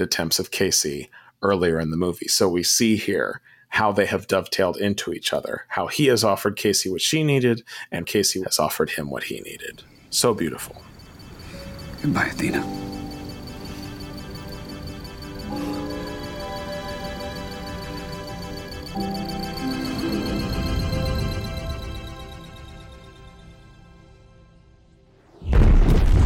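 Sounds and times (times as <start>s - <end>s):
speech: 0.0s - 10.9s, 12.0s - 12.9s
ticking: 10.1s - 22.6s
sustained tonal drone with ringing harmonics: 10.8s - 23.3s
computer monitor crash: 25.3s - 26.2s.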